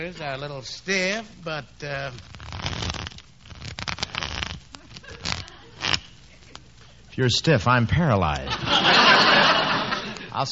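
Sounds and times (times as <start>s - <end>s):
speech: 0.0s - 3.2s, 7.2s - 9.0s, 10.4s - 10.5s
deck of playing cards being shuffled: 1.9s - 6.8s
laughter: 4.8s - 6.8s, 8.4s - 10.5s.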